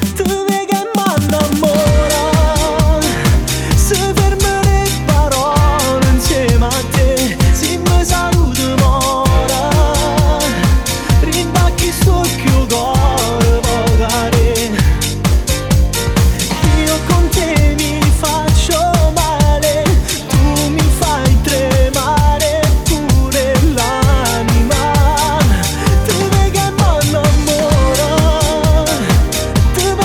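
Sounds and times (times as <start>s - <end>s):
Neapolitan neomelodic disco music remix: 0.0s - 30.0s.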